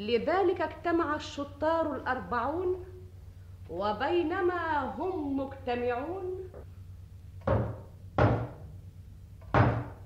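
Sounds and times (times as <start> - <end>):
speech: 0.0 - 3.0, 3.7 - 6.8
heavy knocks on a door: 7.4 - 8.6, 9.5 - 10.0.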